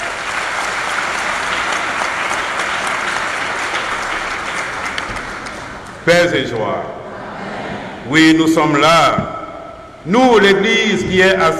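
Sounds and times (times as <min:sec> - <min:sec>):
audience applauding: 0:00.0 - 0:06.0
speech: 0:06.1 - 0:07.0, 0:08.1 - 0:09.3, 0:10.0 - 0:11.5.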